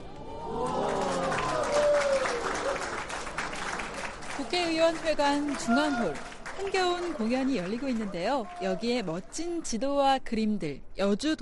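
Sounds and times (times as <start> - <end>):
faint voices or cheers: 0.1 - 3.0, 5.5 - 9.3
crowd applauding: 0.4 - 9.4
speech: 4.6 - 11.4.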